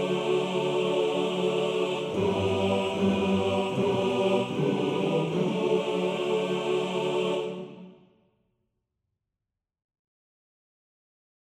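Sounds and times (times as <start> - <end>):
choir singing: 0.0 - 8.1.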